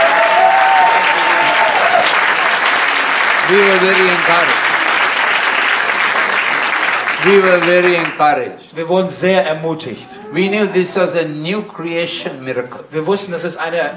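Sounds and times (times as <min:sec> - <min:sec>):
audience clapping hands: 0:00.0 - 0:08.4
speech: 0:03.5 - 0:04.6, 0:07.2 - 0:13.9.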